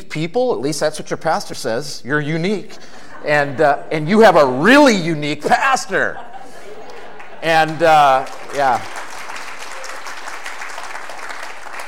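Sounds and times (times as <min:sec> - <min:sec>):
speech: 0:00.1 - 0:06.3, 0:07.4 - 0:09.0
laughter: 0:02.5 - 0:10.2
audience applause: 0:06.9 - 0:11.8.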